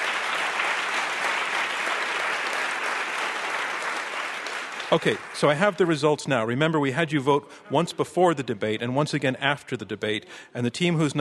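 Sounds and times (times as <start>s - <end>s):
audience applause: 0.0s - 5.9s
speech: 4.9s - 11.1s.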